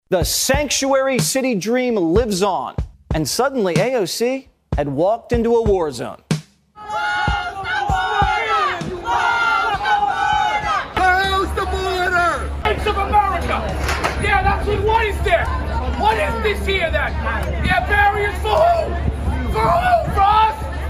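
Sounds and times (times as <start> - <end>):
speech: 0.1 - 6.3
loud angry crowd shouting and jeering: 6.8 - 20.8.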